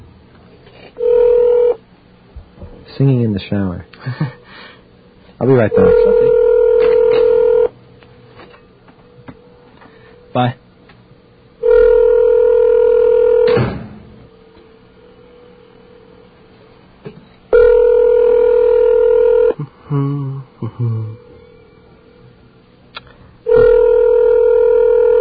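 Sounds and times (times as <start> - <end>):
telephone ringback tone: 1.0 - 1.8, 5.5 - 7.7, 11.6 - 13.6, 17.6 - 19.6, 23.5 - 25.1
speech: 3.0 - 4.4, 5.4 - 6.4, 10.4 - 10.6.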